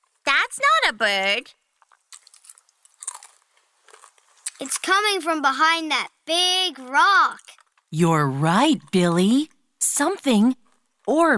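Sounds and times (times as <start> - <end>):
speech: 0.5 - 1.6, 4.6 - 11.3
chewing crunchy food: 1.7 - 4.9, 7.3 - 7.9.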